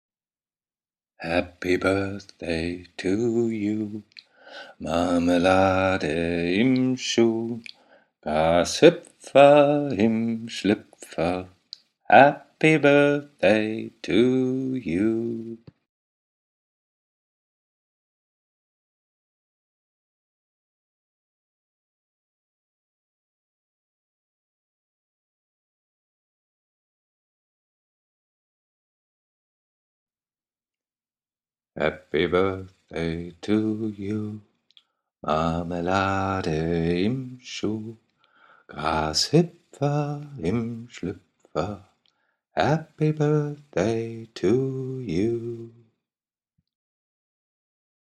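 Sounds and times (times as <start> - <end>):
birthday song: 1.2 - 15.8, 31.8 - 34.5, 35.2 - 41.9, 42.6 - 45.8.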